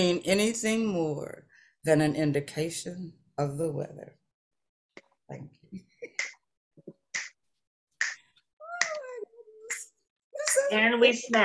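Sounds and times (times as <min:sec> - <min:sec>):
speech: 0:00.0 - 0:04.2, 0:05.3 - 0:05.9, 0:10.6 - 0:11.4
audience snapping fingers: 0:06.1 - 0:06.4, 0:07.1 - 0:07.4, 0:08.0 - 0:09.0.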